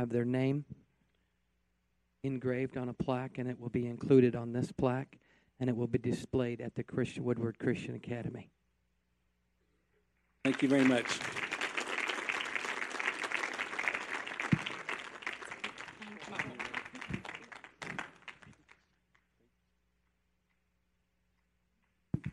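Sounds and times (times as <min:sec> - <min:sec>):
speech: 0:00.0 - 0:00.8, 0:02.2 - 0:08.6, 0:10.4 - 0:11.4
audience applause: 0:10.4 - 0:18.8.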